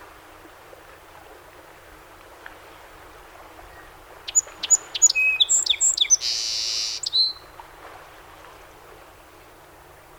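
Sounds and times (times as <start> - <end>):
song sparrow singing: 4.3 - 7.4.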